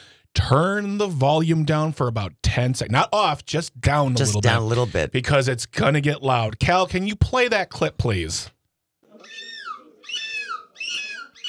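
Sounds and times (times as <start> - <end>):
speech: 0.5 - 8.6
human imitating seagull screech: 9.2 - 11.4.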